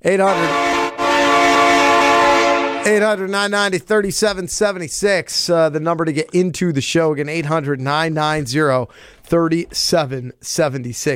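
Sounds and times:
speech: 0:00.0 - 0:00.6, 0:02.8 - 0:11.1
train horn sound effect: 0:00.2 - 0:03.2.

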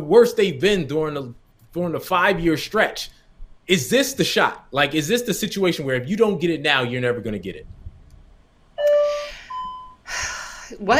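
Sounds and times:
speech: 0:00.0 - 0:07.8, 0:10.7 - 0:10.9
two-tone electronic doorbell chime: 0:08.8 - 0:10.0.

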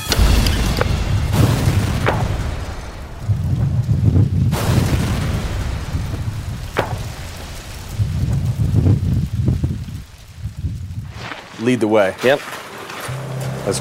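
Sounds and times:
car bomb explosion: 0:00.1 - 0:11.1
speech: 0:11.7 - 0:12.6.

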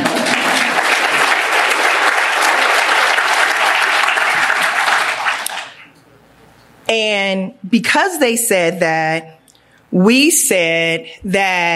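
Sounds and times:
audience applause: 0:00.0 - 0:05.9
speech: 0:07.0 - 0:11.7.

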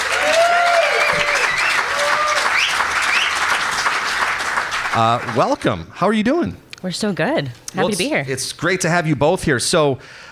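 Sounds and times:
high cheering calls: 0:00.0 - 0:03.6
crowd applauding to welcome two clinic founders onto a stage: 0:00.0 - 0:05.9
speech: 0:05.0 - 0:10.3.

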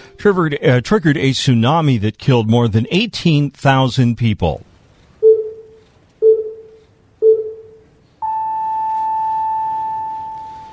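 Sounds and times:
speech: 0:00.2 - 0:04.7
countdown beeping before moment of silence: 0:05.2 - 0:10.7.

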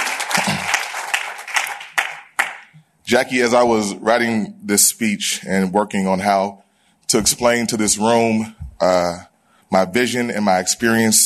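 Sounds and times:
audience applause: 0:00.0 - 0:02.7
speech: 0:03.1 - 0:11.2.

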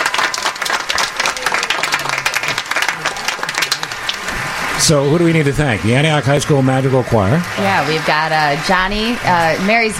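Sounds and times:
audience applause: 0:00.0 - 0:04.8
speech: 0:04.8 - 0:09.9.

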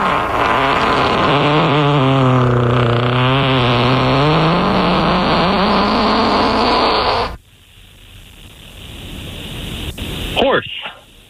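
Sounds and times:
human fart: 0:00.0 - 0:07.4.

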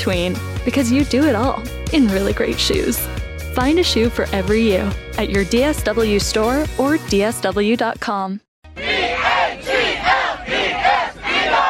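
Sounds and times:
speech: 0:00.0 - 0:08.5
crowd of football fans roaring and chanting: 0:08.8 - 0:11.6.

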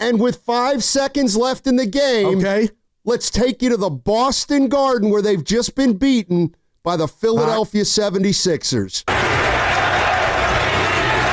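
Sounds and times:
speech: 0:00.0 - 0:09.4
arena crowd chanting: 0:09.1 - 0:11.3.

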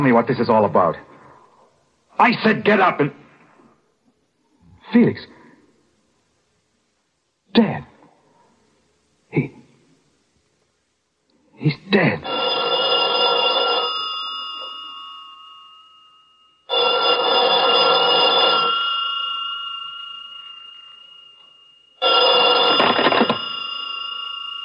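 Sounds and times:
speech: 0:00.0 - 0:01.1, 0:02.2 - 0:03.2, 0:04.9 - 0:05.4, 0:07.6 - 0:07.9, 0:09.3 - 0:09.6, 0:11.6 - 0:12.5
old-fashioned telephone bell ringing: 0:12.2 - 0:24.6.

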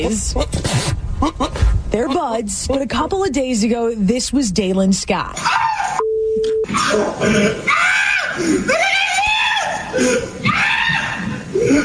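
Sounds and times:
speech: 0:00.0 - 0:08.9
short beep: 0:06.0 - 0:06.7
man screaming in fright: 0:06.7 - 0:11.2.

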